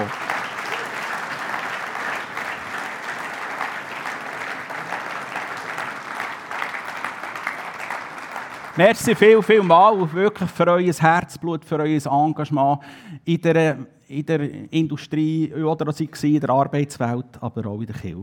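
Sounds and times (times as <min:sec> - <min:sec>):
audience applause: 0:00.0 - 0:10.5
speech: 0:08.8 - 0:18.2.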